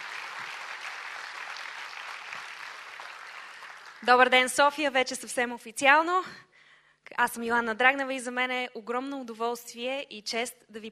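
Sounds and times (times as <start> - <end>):
audience applause: 0.0 - 4.1
speech: 4.0 - 6.5, 7.1 - 10.9.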